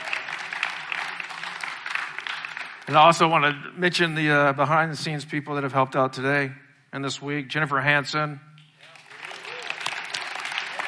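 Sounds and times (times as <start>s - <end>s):
audience applause for a volunteer cook: 0.0s - 3.0s, 8.8s - 10.8s
speech: 2.9s - 8.5s.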